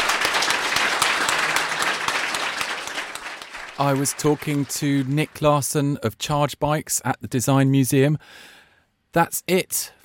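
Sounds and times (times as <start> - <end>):
audience applause: 0.0 - 5.6
speech: 3.8 - 10.0.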